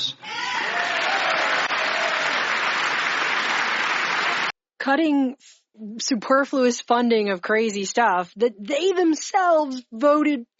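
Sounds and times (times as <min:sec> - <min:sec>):
audience applause: 0:00.3 - 0:04.6
speech: 0:04.8 - 0:10.5.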